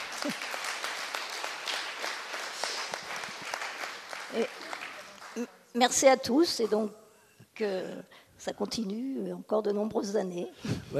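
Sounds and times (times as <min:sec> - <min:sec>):
audience applause after a vote: 0:00.0 - 0:05.4
speech: 0:00.2 - 0:00.6, 0:04.4 - 0:04.6, 0:05.4 - 0:07.0, 0:07.6 - 0:10.9.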